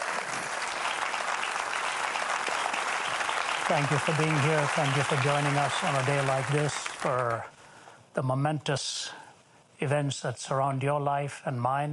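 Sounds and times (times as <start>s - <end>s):
audience applause welcoming a speaker at a church gathering: 0.0s - 7.4s
speech: 3.7s - 7.6s, 8.2s - 9.2s, 9.8s - 11.9s.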